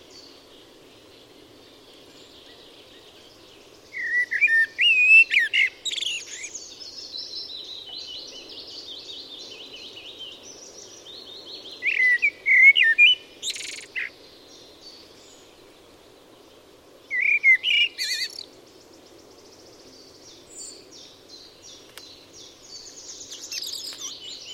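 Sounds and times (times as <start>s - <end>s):
Eurasian blackbird singing mellow notes: 0.0s - 24.5s
faint high twittering: 1.0s - 24.5s.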